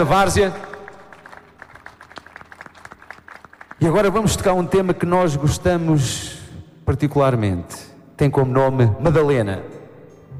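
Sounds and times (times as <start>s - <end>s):
speech: 0.0s - 0.7s, 3.8s - 9.7s
scattered hand claps from an audience at an evening folk concert: 0.2s - 4.1s.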